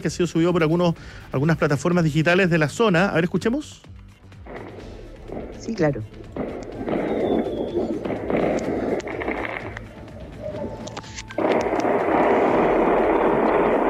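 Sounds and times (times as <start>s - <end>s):
speech: 0.0s - 3.9s, 5.6s - 7.0s
gunshots: 4.4s - 9.9s, 11.4s - 13.8s
fireworks: 6.4s - 9.9s, 11.4s - 13.8s.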